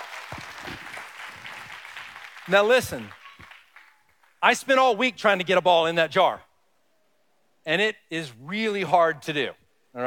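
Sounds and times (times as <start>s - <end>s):
audience applause: 0.0s - 4.2s
speech: 2.5s - 3.2s, 4.4s - 6.5s, 7.6s - 10.0s.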